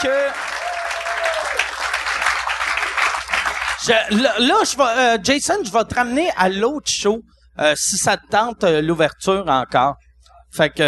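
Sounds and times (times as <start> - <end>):
speech: 0.0 - 0.5, 3.8 - 10.8
audience applause: 0.0 - 3.9.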